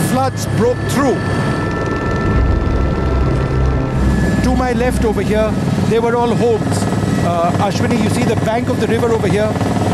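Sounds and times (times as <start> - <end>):
helicopter flying over a flooded river: 0.0 - 9.9
speech: 0.2 - 1.6, 4.4 - 9.8.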